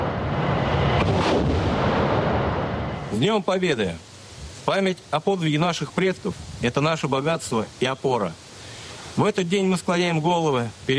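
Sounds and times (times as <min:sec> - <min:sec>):
artillery fire: 0:00.0 - 0:03.1
speech: 0:03.2 - 0:04.1, 0:04.7 - 0:08.4, 0:09.2 - 0:10.9.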